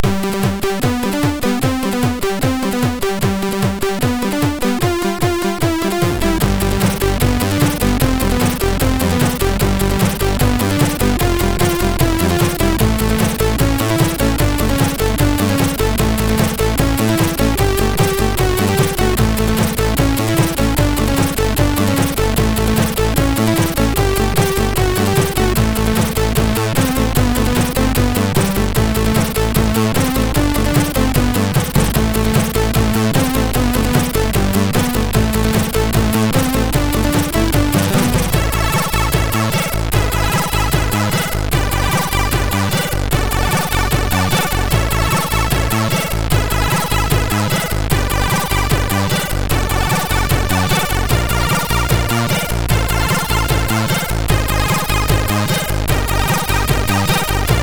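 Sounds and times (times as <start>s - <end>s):
swing music on a MOS6581R3 SID chip: 0.0s - 57.6s.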